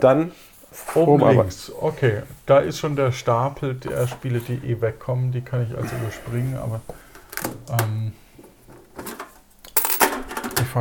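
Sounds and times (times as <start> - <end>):
speech: 0.0 - 8.0
coins rattling in a tin can: 9.8 - 10.6.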